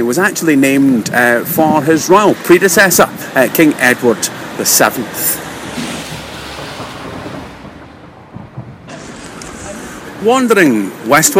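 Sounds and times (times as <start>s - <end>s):
speech: 0.0s - 5.4s, 10.2s - 11.3s
London rain pattering on an umbrella: 8.9s - 9.8s.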